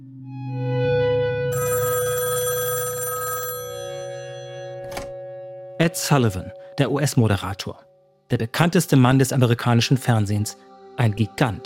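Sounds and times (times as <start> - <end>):
telephone ringing at a music manager's: 1.5 - 5.4
speech: 5.8 - 11.6.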